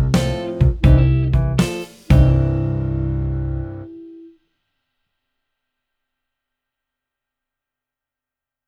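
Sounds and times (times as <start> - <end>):
piano: 0.0 - 4.3.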